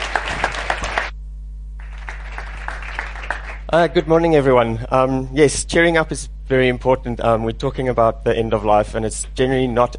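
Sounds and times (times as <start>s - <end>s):
audience clapping hands: 0.0s - 1.2s, 1.8s - 3.7s
speech: 3.7s - 9.9s.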